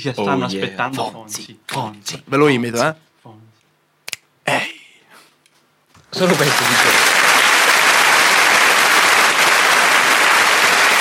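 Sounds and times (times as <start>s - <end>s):
speech: 0.0s - 3.4s, 6.2s - 7.2s
audience applause: 6.1s - 10.9s.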